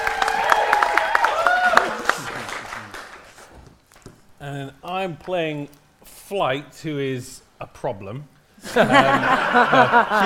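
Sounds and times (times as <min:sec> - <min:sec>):
live audience clapping: 0:00.0 - 0:04.0
speech: 0:05.0 - 0:10.2
laughter: 0:08.6 - 0:10.2.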